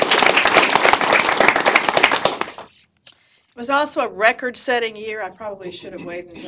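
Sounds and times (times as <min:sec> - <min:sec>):
audience applause: 0:00.0 - 0:02.7
speech: 0:03.6 - 0:06.4.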